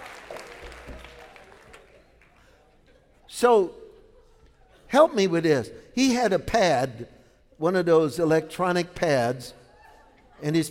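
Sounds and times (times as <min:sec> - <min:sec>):
audience clapping: 0:00.0 - 0:02.4
speech: 0:03.4 - 0:03.8, 0:04.9 - 0:09.6, 0:10.4 - 0:10.6.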